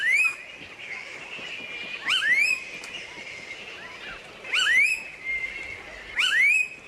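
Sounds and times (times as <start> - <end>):
blue-faced honeyeater calling: 0.0 - 0.5, 2.0 - 2.8, 3.8 - 6.8.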